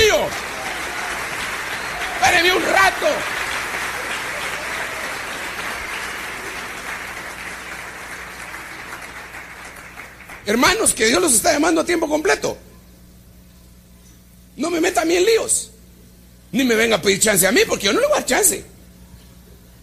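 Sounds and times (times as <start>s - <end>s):
audience applause: 0.0s - 10.5s
speech: 10.5s - 12.7s, 14.6s - 15.8s, 16.5s - 18.7s.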